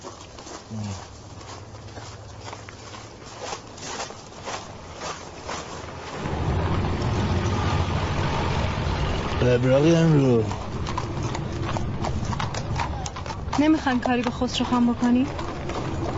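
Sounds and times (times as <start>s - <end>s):
car engine idling and pulling away: 0.0s - 16.1s
speech: 9.5s - 10.6s, 13.6s - 15.5s.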